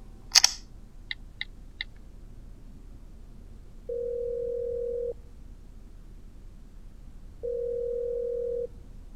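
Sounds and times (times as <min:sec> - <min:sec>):
sharp click: 0:00.3 - 0:02.0
telephone ringback tone, unanswered call: 0:03.9 - 0:05.2, 0:07.4 - 0:08.7.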